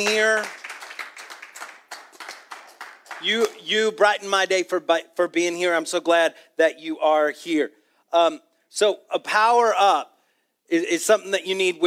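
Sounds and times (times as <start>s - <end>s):
speech: 0.0s - 0.6s, 3.2s - 10.1s, 10.7s - 11.8s
audience clapping for coming to church: 0.0s - 3.8s.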